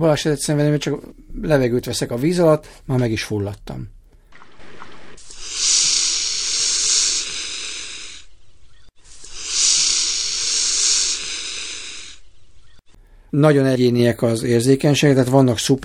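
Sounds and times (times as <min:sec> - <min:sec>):
speech: 0:00.0 - 0:04.0, 0:13.3 - 0:15.8
mute swan hissing: 0:04.3 - 0:12.8.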